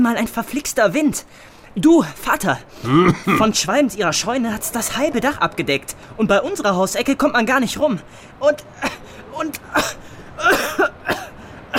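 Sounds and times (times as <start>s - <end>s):
speech: 0.0s - 11.3s
child coughing harshly: 2.8s - 3.6s, 9.7s - 11.7s.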